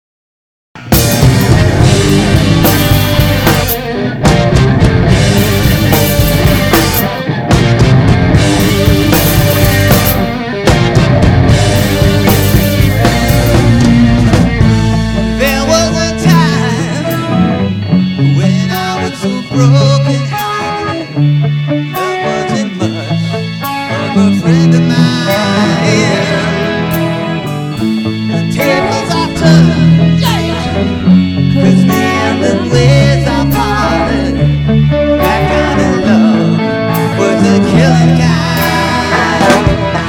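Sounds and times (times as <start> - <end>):
tribute band playing: 0.8 - 40.0.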